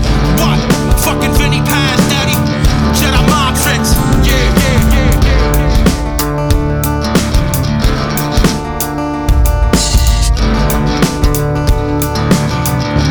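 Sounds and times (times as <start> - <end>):
underground hip hop rap: 0.0 - 13.0.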